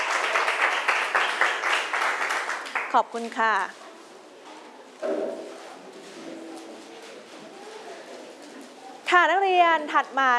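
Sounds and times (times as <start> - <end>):
students clapping: 0.0 - 3.0
speech: 2.9 - 3.8, 5.0 - 5.4, 9.1 - 10.3.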